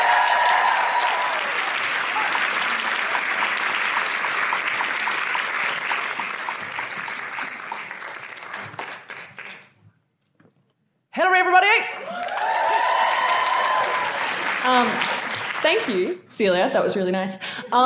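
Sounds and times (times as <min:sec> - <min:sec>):
audience applause: 0:00.0 - 0:09.8, 0:12.0 - 0:16.2
speech: 0:15.9 - 0:17.8.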